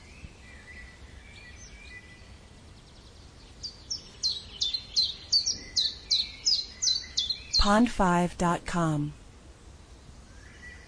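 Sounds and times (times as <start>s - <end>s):
bird chirping: 0.0s - 7.9s
speech: 7.6s - 9.2s.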